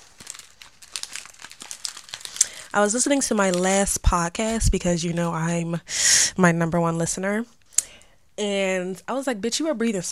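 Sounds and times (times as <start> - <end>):
plastic Skittles candy bag crinkling: 0.0 - 4.7
speech: 2.8 - 7.6, 8.4 - 10.1.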